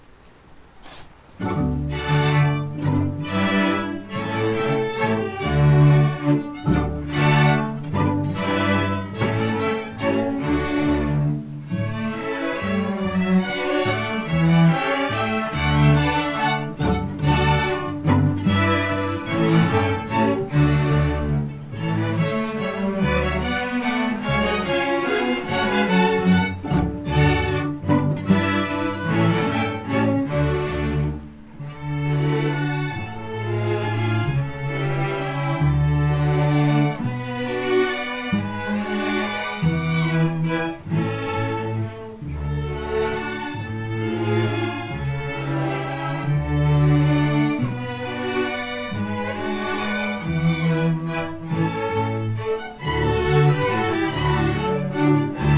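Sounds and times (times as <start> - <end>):
orchestra: 0.0 - 55.5.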